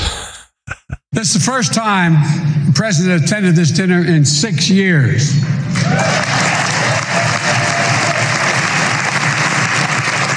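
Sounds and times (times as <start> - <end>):
speech: 1.1 - 6.5
audience applause: 5.8 - 10.3.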